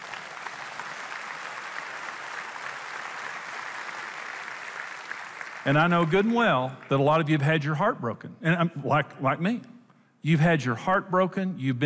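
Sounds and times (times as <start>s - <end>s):
audience clapping: 0.0s - 7.4s
speech: 5.6s - 11.8s.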